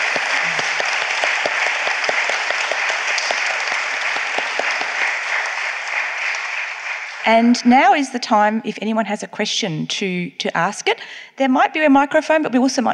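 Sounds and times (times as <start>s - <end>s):
audience clapping: 0.0s - 7.7s
speech: 7.3s - 12.9s.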